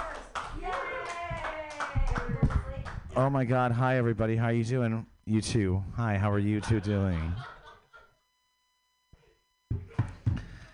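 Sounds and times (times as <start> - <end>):
audience voices calling out and cheering: 0.0 - 2.6
audience clapping to welcome a guest introduced on stage: 0.0 - 3.1
speech: 3.2 - 7.5
laughter: 6.3 - 8.2.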